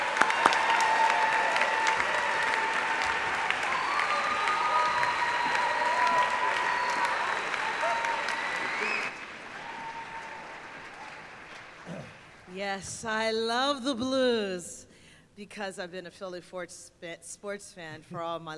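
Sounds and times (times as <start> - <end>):
audience clapping to welcome guests: 0.0 - 12.8
speech: 12.7 - 14.8, 15.4 - 18.5.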